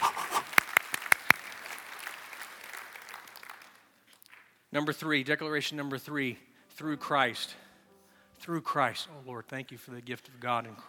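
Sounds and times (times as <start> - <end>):
audience clapping: 0.0 - 4.6
speech: 4.7 - 7.6, 8.4 - 10.8.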